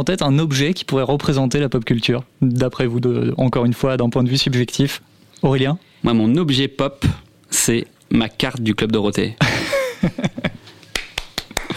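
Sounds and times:
speech: 0.0s - 10.5s
laughter: 9.4s - 10.6s
hand claps: 10.8s - 11.7s.

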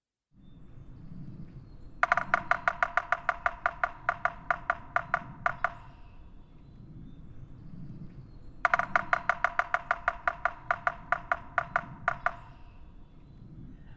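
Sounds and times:
Yellow-bellied Sapsucker drumming: 1.9s - 6.5s, 8.2s - 13.1s.

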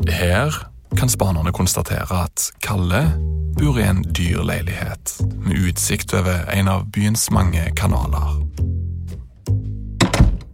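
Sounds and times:
speech: 0.0s - 8.7s
door slamming shut: 10.0s - 10.5s.

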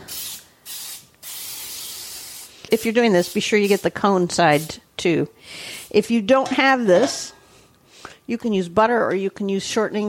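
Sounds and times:
Baker's Joy flour baking spray hissing inside a baking pan: 0.0s - 3.9s
speech: 2.7s - 7.4s, 8.3s - 10.0s.

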